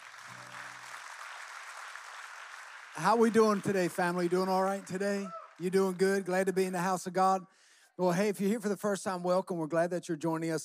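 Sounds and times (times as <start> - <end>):
audience clapping: 0.0 - 6.6
speech: 3.0 - 10.6.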